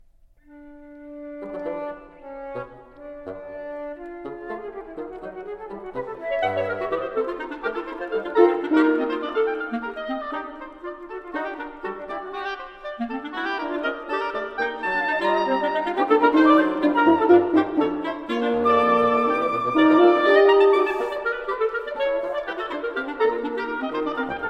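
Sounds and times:
woodwind quintet playing a playful allegro: 0.4s - 24.4s.

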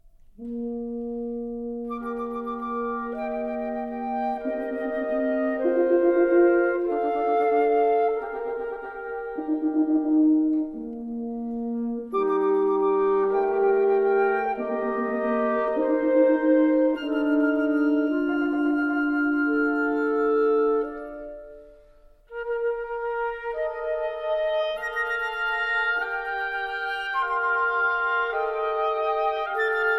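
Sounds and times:
woodwind quintet playing a partita coda: 0.2s - 29.9s.

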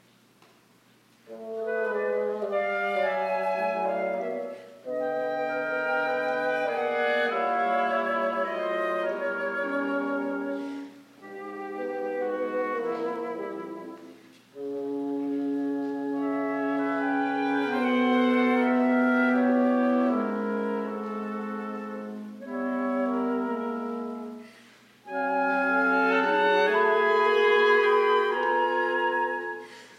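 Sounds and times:
wind quintet playing presto: 1.2s - 29.9s.

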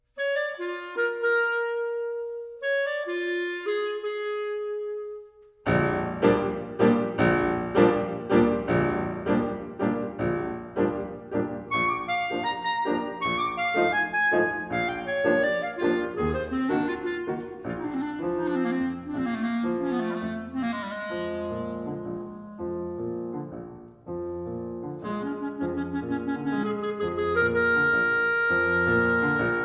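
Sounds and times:
piano prelude: 0.2s - 29.6s.

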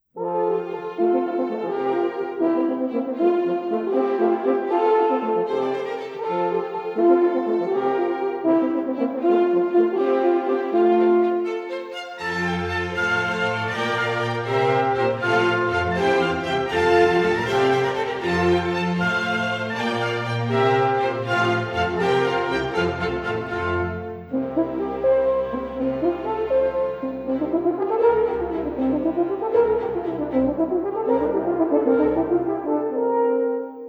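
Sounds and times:
concerto for two horns: 0.0s - 33.8s.

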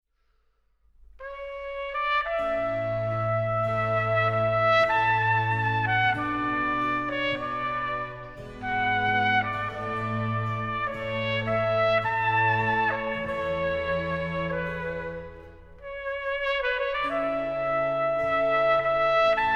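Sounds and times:
concerto in D major andante: 1.2s - 19.5s.

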